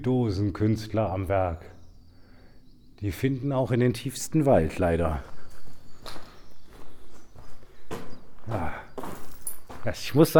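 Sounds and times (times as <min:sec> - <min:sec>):
speech: 0:00.0 - 0:01.8, 0:03.0 - 0:05.3, 0:08.5 - 0:08.8, 0:09.8 - 0:10.3
footsteps walking beneath a concrete tower: 0:04.7 - 0:10.3.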